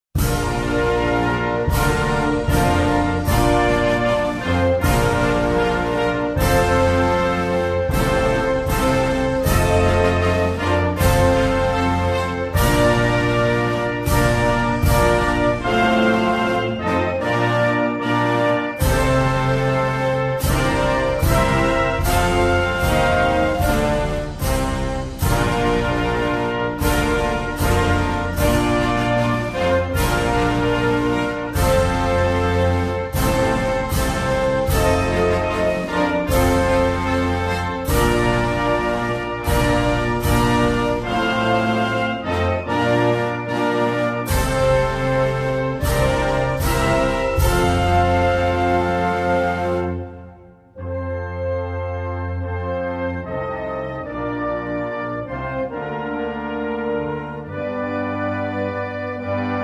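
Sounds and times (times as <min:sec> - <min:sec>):
national anthem: 0:00.2 - 0:59.6.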